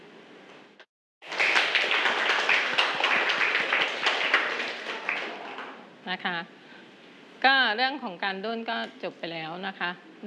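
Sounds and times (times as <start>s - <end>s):
students clapping hands in thanks: 1.2s - 5.9s
speech: 6.1s - 6.6s, 7.4s - 10.2s.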